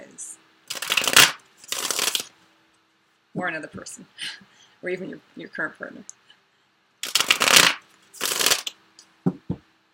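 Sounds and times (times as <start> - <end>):
Sensual Wicca Tarot card deck being shuffled: 0.7 - 2.3, 7.0 - 8.8
speech: 3.4 - 6.2.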